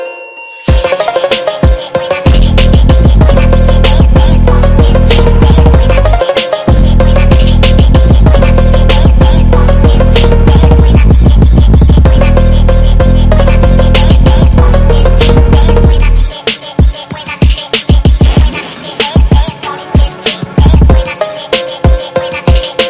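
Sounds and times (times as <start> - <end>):
hard phonk music: 0.7 - 22.8.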